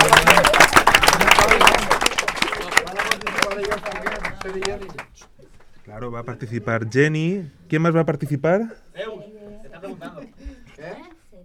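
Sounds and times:
audience applause: 0.0 - 5.2
speech: 6.0 - 9.2.

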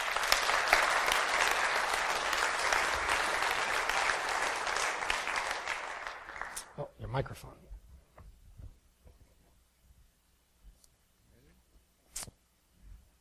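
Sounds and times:
audience applause: 0.0 - 7.0
speech: 7.1 - 7.6.

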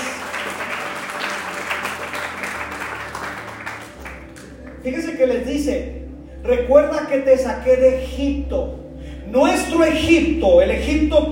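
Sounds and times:
crowd applauding: 0.0 - 4.8
speech: 4.8 - 11.3.

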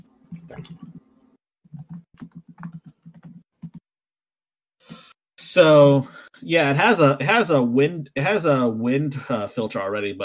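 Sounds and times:
speech: 0.4 - 1.0, 5.5 - 10.2
typing on a computer keyboard: 1.7 - 3.8.

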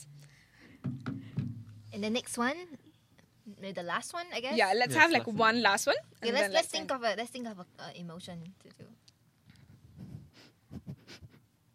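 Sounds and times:
speech: 2.0 - 2.8, 3.6 - 8.9
sniffing into a microphone: 9.9 - 11.4.

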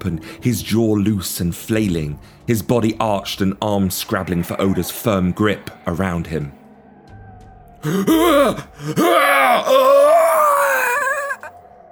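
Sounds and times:
speech: 0.0 - 6.6, 7.8 - 10.1
man gasping and groaning for breath: 7.8 - 11.5.

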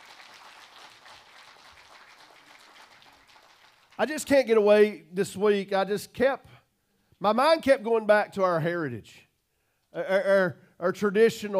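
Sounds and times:
room full of people applauding: 0.0 - 4.3
speech: 4.0 - 6.5, 7.2 - 9.2, 9.9 - 11.5.

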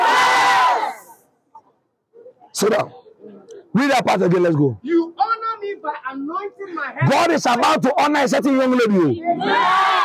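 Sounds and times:
crowd shouting: 0.0 - 1.2, 9.2 - 10.0
speech: 2.6 - 5.0, 5.8 - 10.0.

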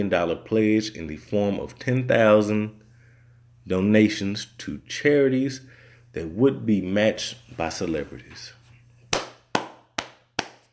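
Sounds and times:
speech: 0.0 - 2.8, 3.7 - 8.6
clapping: 9.1 - 10.6.

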